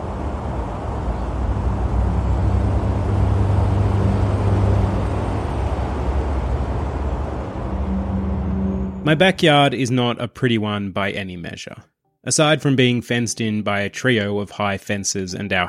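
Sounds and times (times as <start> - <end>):
road traffic noise heard from a backyard: 0.0 - 9.7
speech: 9.1 - 15.6.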